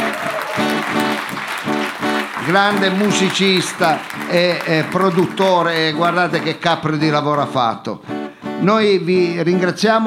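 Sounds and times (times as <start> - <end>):
audience applause: 0.0 - 7.4
speech: 2.5 - 10.0.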